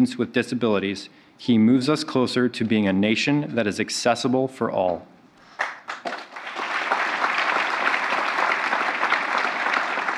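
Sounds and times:
speech: 0.0 - 5.1
crowd applauding at medal ceremony: 5.6 - 10.1.

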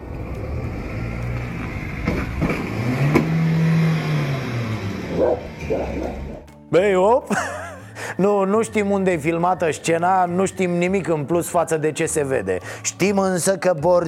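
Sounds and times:
car speeding past: 0.0 - 6.5
short dog-like barks: 5.1 - 6.5
speech: 6.8 - 7.6, 8.2 - 14.0
laughter: 7.2 - 8.2.

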